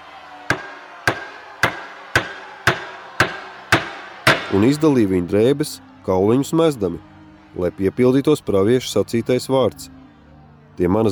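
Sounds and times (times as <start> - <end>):
hammer blows striking nails: 0.5 - 4.6
speech: 4.5 - 10.0, 10.8 - 11.1.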